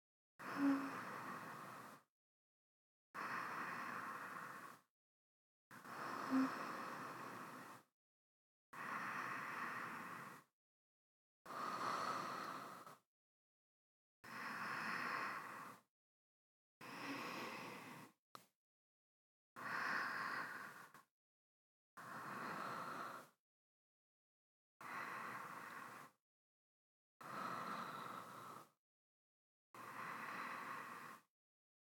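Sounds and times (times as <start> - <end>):
person breathing in sleep: 0.4 - 2.1, 3.2 - 4.9, 5.8 - 7.9, 8.8 - 10.5, 11.5 - 13.0, 14.2 - 15.9, 16.8 - 18.2, 19.6 - 21.1, 22.0 - 23.4, 24.8 - 26.2, 27.2 - 28.7, 29.8 - 31.3.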